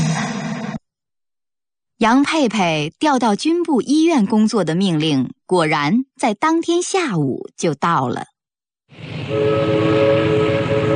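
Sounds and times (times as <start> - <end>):
speech: 2.0 - 8.3, 8.9 - 10.4
horn of a passenger train bound for the provincial capital: 9.0 - 10.9.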